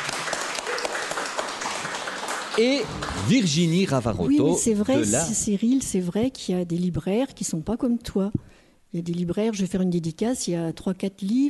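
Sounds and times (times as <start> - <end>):
audience applause: 0.0 - 4.0
speech: 2.6 - 11.4.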